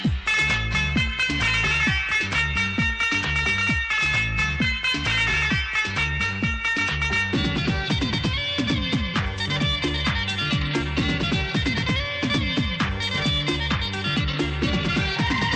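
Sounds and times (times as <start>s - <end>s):
instrumental ringtone: 0.0s - 15.5s.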